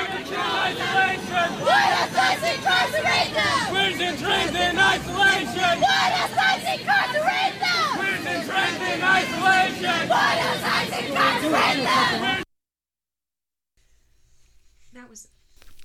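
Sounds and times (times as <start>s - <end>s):
protesters chanting at a street demonstration against ICE and Border Patrol detention: 0.0s - 12.4s.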